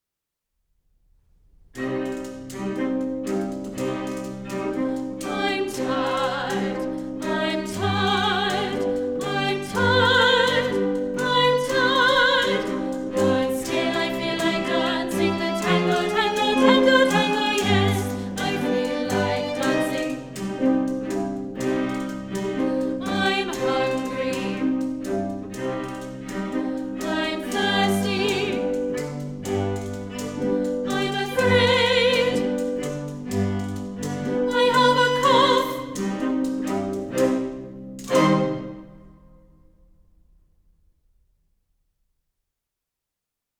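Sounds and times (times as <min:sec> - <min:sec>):
English tango music: 0:01.8 - 0:39.1.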